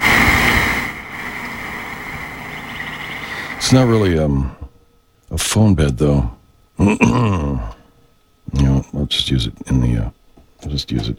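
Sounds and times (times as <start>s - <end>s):
ocean waves sound bed: 0.0s - 4.1s
wind outside: 0.0s - 5.3s
speech: 3.7s - 4.6s, 5.3s - 7.8s, 8.5s - 11.1s.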